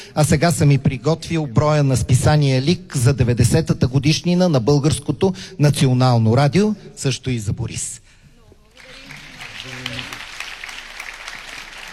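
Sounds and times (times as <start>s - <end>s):
speech: 0.1s - 8.0s
crowd applause: 8.8s - 11.9s.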